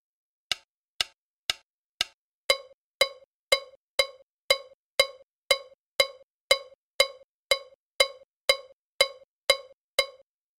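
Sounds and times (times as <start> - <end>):
bell timeline rhythm pattern: 2.5 - 10.3.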